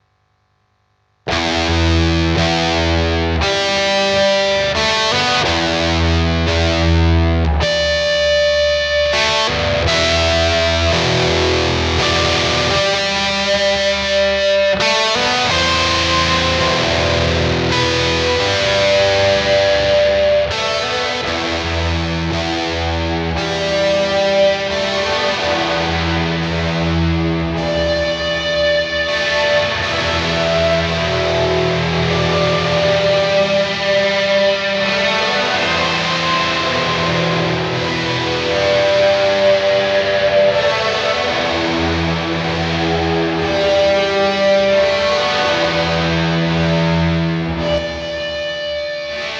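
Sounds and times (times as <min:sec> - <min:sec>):
high gain distortion: 0:00.0 - 0:49.3.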